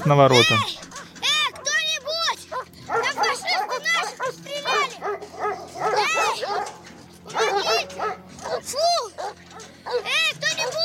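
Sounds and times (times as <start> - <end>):
speech: 0.0 - 0.9
dogs running out at a gate barking and yelping: 0.3 - 10.8.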